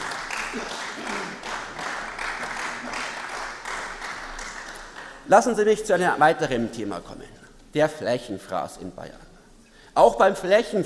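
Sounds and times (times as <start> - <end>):
applause in a parliament: 0.0 - 5.3
speech: 5.3 - 9.3, 10.0 - 10.8.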